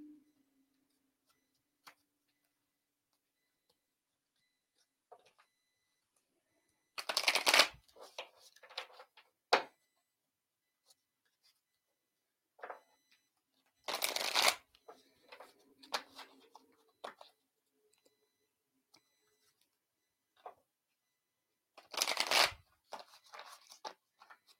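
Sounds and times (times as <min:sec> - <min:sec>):
deck of tarot cards being shuffled for a reading: 0:07.0 - 0:08.8, 0:13.9 - 0:14.6, 0:21.8 - 0:24.0.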